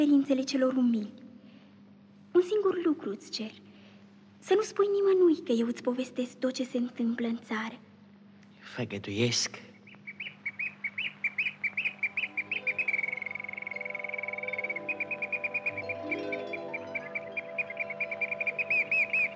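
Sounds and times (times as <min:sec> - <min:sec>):
speech: 0:00.0 - 0:01.2, 0:02.3 - 0:03.6, 0:04.4 - 0:07.9, 0:08.6 - 0:09.7
nightingale singing: 0:09.7 - 0:19.3.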